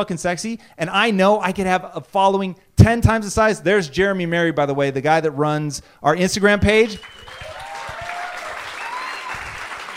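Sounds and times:
speech: 0:00.0 - 0:07.5
audience applause: 0:07.0 - 0:09.9.

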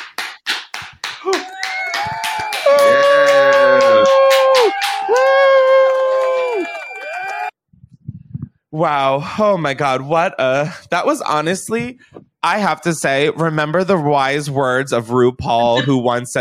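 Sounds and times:
applause sound effect: 0:00.0 - 0:07.5
speech: 0:08.8 - 0:16.3.

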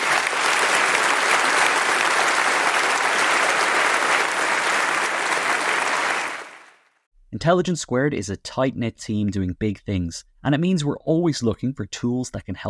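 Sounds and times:
audience applause: 0:00.0 - 0:06.9
speech: 0:07.4 - 0:12.6.

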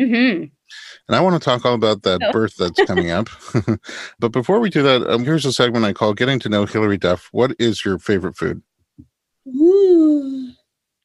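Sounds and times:
speech: 0:00.0 - 0:10.5
laughter: 0:01.1 - 0:08.3
person yawning: 0:03.2 - 0:04.3.

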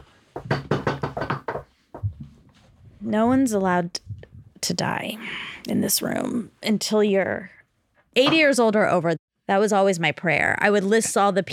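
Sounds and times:
people knocking on wood: 0:00.4 - 0:02.4
speech: 0:03.0 - 0:04.0, 0:04.7 - 0:07.6, 0:08.2 - 0:11.5.

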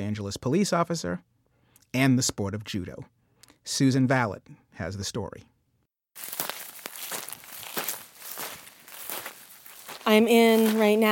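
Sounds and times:
speech: 0:00.0 - 0:01.3, 0:01.9 - 0:05.5, 0:06.2 - 0:06.4, 0:10.1 - 0:11.1
brittle twigs and leaves crackling and rustling: 0:06.2 - 0:11.1
footsteps tromping through dry brush: 0:06.2 - 0:11.1.

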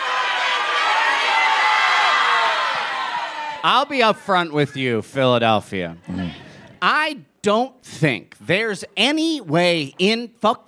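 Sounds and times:
crowd shouting their full names: 0:00.0 - 0:04.2
speech: 0:03.6 - 0:10.6.

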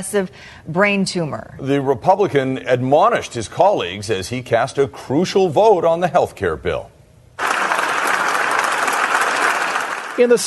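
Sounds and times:
speech: 0:00.0 - 0:06.9, 0:10.2 - 0:10.4
standing ovation applause for Senator John McCain in the Senate chamber: 0:07.4 - 0:10.4.

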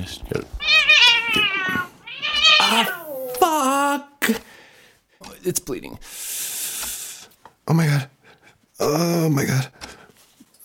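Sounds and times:
speech: 0:00.0 - 0:00.4, 0:05.5 - 0:06.3, 0:07.7 - 0:08.1, 0:08.8 - 0:09.8
cat meowing beside a microphone: 0:00.6 - 0:03.3.

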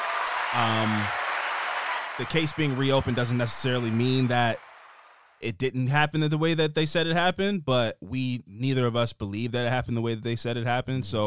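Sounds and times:
applause: 0:00.0 - 0:05.3
speech: 0:00.5 - 0:01.2, 0:02.2 - 0:04.7, 0:05.4 - 0:11.2.

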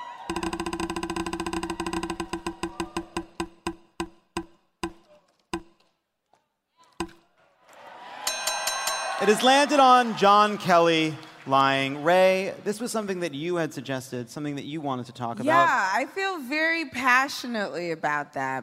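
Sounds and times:
prize wheel spinning with ratcheting clicks: 0:00.3 - 0:04.2
speech: 0:09.2 - 0:18.6.

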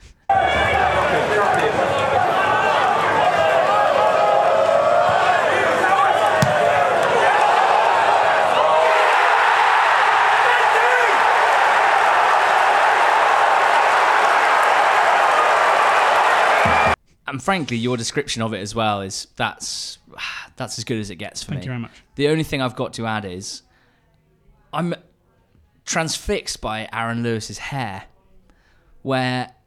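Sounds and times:
large football crowd cheering and applauding: 0:00.3 - 0:17.0
sharp thud: 0:06.4 - 0:07.0
speech: 0:17.4 - 0:23.7, 0:24.7 - 0:25.1, 0:25.9 - 0:28.1, 0:29.0 - 0:29.6.

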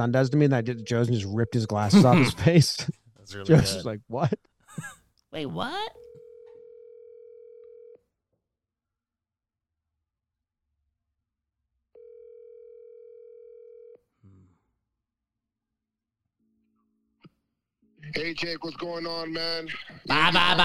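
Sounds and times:
speech: 0:00.0 - 0:06.1, 0:18.0 - 0:20.6
laughter: 0:01.8 - 0:02.9, 0:19.7 - 0:20.6
telephone dial tone after hang-up: 0:06.0 - 0:08.0, 0:12.0 - 0:14.0.

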